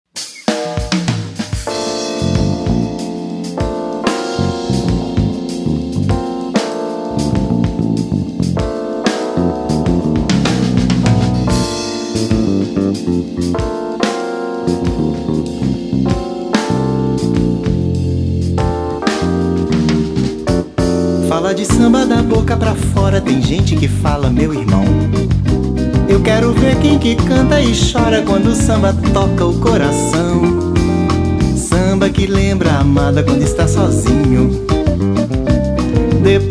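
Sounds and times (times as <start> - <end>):
samba music: 0.1 - 36.5.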